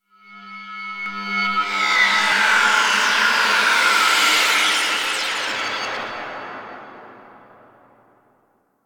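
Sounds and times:
undercroft ambience with reverb, delay and warp: 1.6s - 7.4s.

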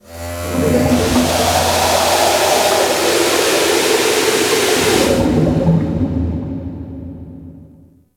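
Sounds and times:
large ocean ship steam blast: 0.3s - 5.6s.

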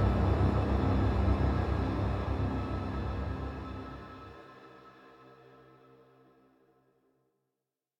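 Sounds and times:
room transformation music cue: 0.0s - 4.3s.

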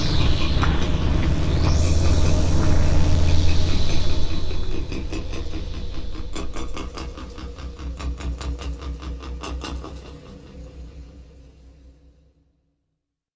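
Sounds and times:
background machinery running: 0.0s - 8.8s.

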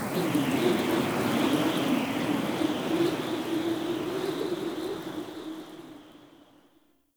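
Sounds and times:
strong wind gust whistling through rope under a city: 0.2s - 5.9s.

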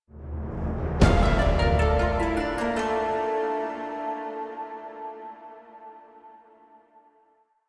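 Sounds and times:
card appear music cue: 1.0s - 7.2s.

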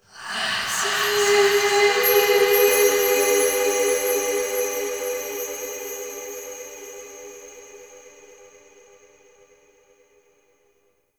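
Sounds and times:
spirit tree holy chatters ambience: 0.2s - 7.6s.

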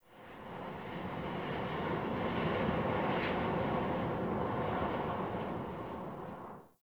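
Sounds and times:
heavy slow wind gusts under a city: 0.1s - 6.6s.

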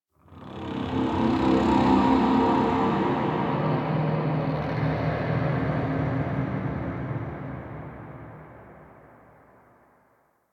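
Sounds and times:
ambient texture: 0.4s - 8.7s.

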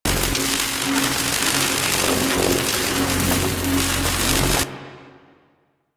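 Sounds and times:
gas electricity loop: 0.0s - 4.6s.

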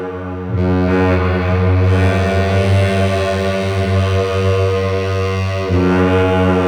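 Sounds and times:
distant dark castle horn: 0.2s - 6.6s.

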